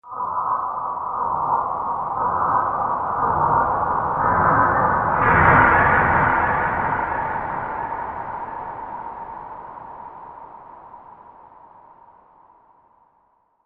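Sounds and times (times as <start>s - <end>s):
strange horror building tension music: 0.1s - 12.2s.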